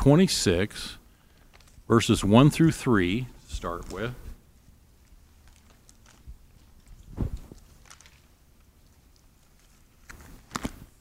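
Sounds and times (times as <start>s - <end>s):
speech: 0.0s - 1.0s, 1.9s - 4.2s
Bible pages turning: 3.6s - 4.2s, 5.4s - 10.9s.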